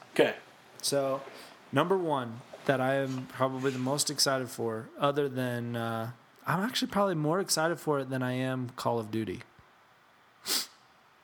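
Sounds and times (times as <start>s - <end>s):
speech: 0.2s - 9.5s
person sniffing: 10.4s - 10.9s.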